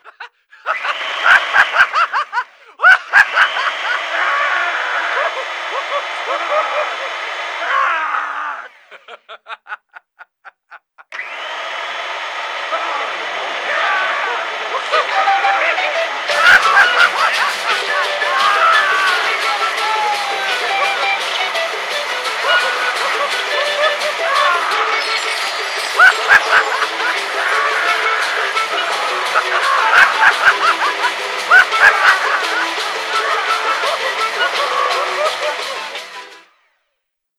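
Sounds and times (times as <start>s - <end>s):
laughter: 0.0s - 11.2s, 12.5s - 36.4s
TV horror music: 13.8s - 36.4s.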